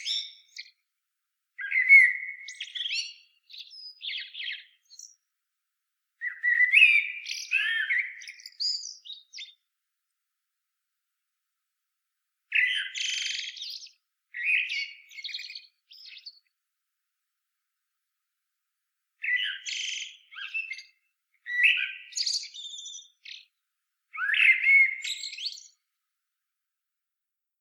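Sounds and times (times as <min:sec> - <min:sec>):
common blackbird mellow whistled song: 0:00.0 - 0:00.8, 0:01.6 - 0:05.3, 0:06.2 - 0:09.7, 0:12.5 - 0:16.5, 0:19.2 - 0:25.9.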